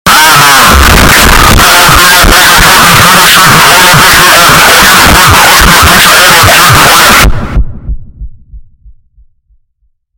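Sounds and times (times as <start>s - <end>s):
distortion: 0.0s - 9.6s.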